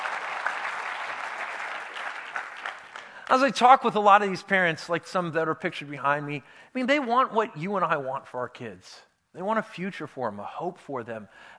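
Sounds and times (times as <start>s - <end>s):
audience applause: 0.0s - 3.3s
speech: 3.3s - 11.5s.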